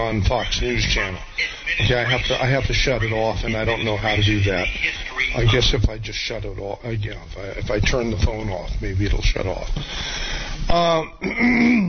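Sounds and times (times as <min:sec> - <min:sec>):
speech: 0:00.0 - 0:11.8
man clearing throat at a microphone: 0:10.9 - 0:11.8.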